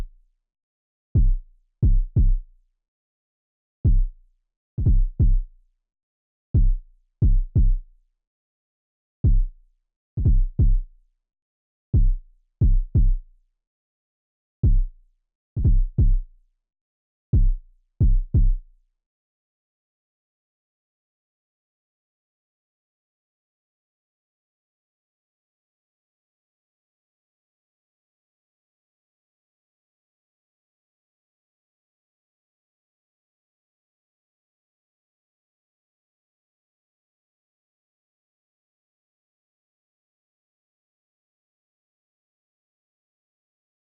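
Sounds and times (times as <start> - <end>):
kick drum: 1.2 - 2.5, 3.8 - 4.2, 4.8 - 5.5, 6.6 - 7.9, 9.2 - 9.6, 10.2 - 10.9, 12.0 - 13.3, 14.6 - 15.0, 15.6 - 16.3, 17.3 - 18.7.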